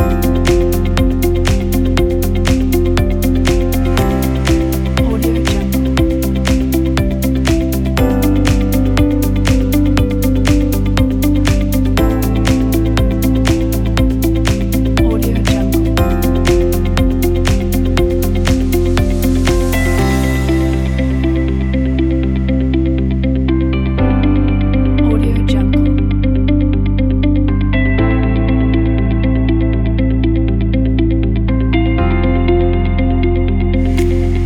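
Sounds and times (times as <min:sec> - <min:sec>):
corporate music: 0:00.0 - 0:34.4.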